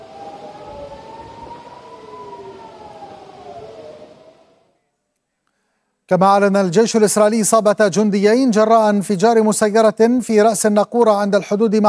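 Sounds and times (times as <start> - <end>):
air raid warning sirens wailing: 0.0 - 4.8
speech: 6.1 - 11.8.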